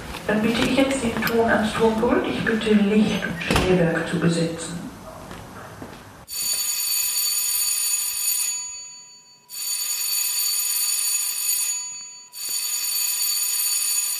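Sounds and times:
speech: 0.3 - 4.8
theatre bell signal ringing: 6.3 - 14.1.

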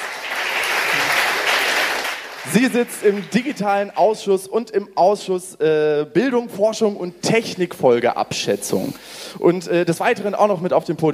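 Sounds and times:
audience applause: 0.0 - 3.6
speech: 2.5 - 11.1.

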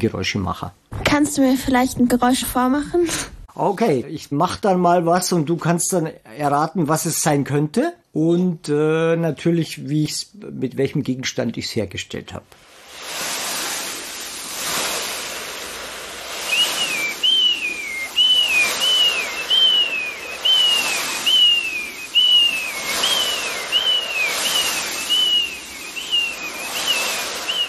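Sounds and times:
speech: 0.0 - 12.7
foley sea waves: 12.5 - 27.6
seagull cries: 16.5 - 27.6.

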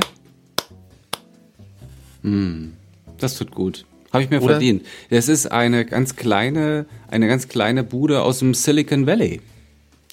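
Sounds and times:
small applause by one person: 0.0 - 1.4
speech: 2.2 - 10.1.

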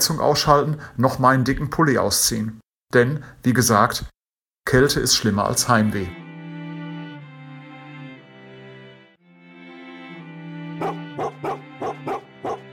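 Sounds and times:
speech: 0.1 - 6.2
husky dogs whining: 10.8 - 12.7.

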